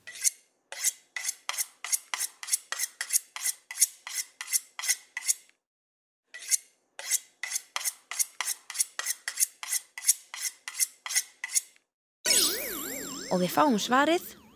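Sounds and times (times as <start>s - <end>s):
knife drawn through a knife sharpener: 0.0s - 5.5s, 6.3s - 11.8s
speech: 13.4s - 14.4s.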